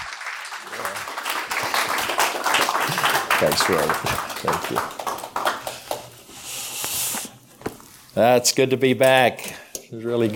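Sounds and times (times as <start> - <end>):
audience applause welcoming a speaker at a Christian gathering: 0.0 - 6.2
speech: 3.4 - 5.0, 8.2 - 10.3.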